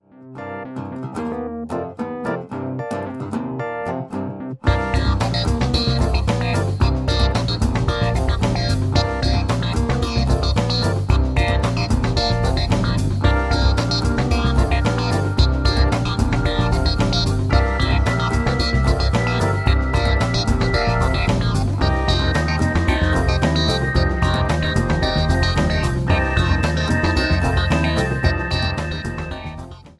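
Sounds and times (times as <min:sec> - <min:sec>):
funk music: 0:00.2 - 0:29.9.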